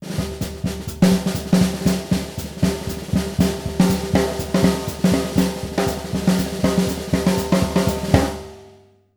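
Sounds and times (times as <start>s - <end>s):
jazzy breakbeat: 0.0s - 8.4s.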